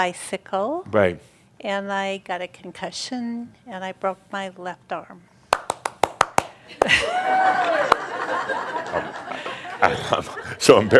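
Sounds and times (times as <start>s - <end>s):
speech: 0.0s - 5.3s, 9.8s - 10.9s
one person clapping hands: 5.5s - 7.0s, 7.6s - 8.1s
laughter: 6.7s - 10.9s.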